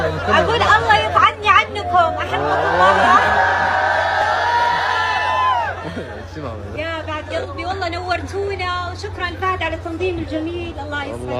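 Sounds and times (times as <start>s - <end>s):
laughter: 0.0s - 1.3s, 2.2s - 7.6s
speech: 0.2s - 0.9s, 9.2s - 11.3s
audience screaming and cheering: 1.7s - 6.1s.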